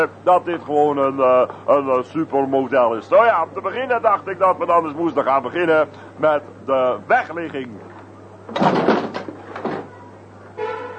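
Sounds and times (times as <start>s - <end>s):
speech: 0.0s - 7.9s
handcart being tipped upside down: 8.5s - 10.0s.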